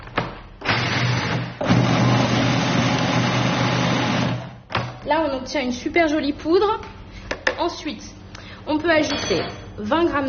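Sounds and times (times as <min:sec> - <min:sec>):
electric blender grinding peanuts into powder: 0:00.6 - 0:04.6
speech: 0:05.4 - 0:07.0, 0:07.6 - 0:10.2.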